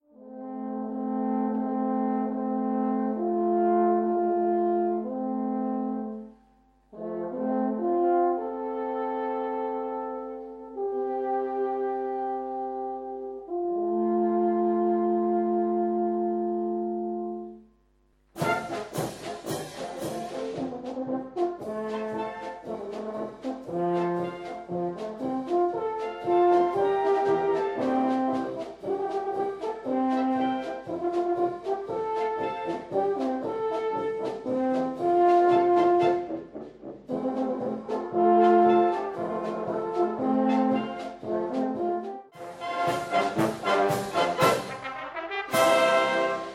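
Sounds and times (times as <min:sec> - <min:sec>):
alphorn polka: 0:00.0 - 0:46.5.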